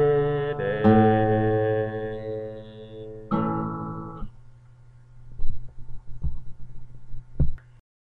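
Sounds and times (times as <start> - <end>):
bass voice singing: 0.0 - 3.3.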